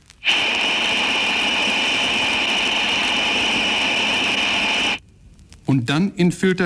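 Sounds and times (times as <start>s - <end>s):
shrill whistle of steam or air leaking through valve gland packing: 0.2s - 5.0s
speech: 5.7s - 6.6s.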